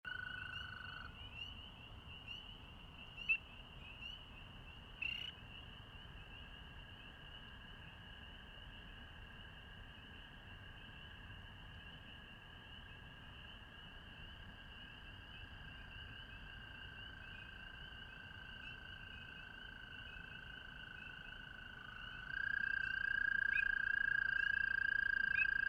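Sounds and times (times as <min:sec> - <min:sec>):
American toad calling: 0:00.1 - 0:01.6, 0:05.0 - 0:05.4, 0:21.1 - 0:25.6
spring peepers calling: 0:00.1 - 0:06.4, 0:14.3 - 0:25.6.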